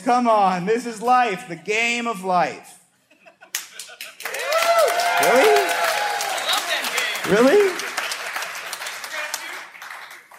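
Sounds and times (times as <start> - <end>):
speech: 0.0 - 2.8, 5.2 - 5.8, 7.2 - 7.8
crowd clapping: 3.5 - 10.3.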